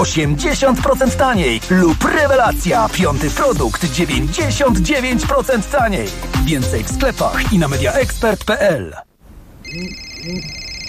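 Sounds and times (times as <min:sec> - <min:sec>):
speech: 0:00.0 - 0:09.1, 0:09.7 - 0:10.6
telephone ringing: 0:09.6 - 0:10.8.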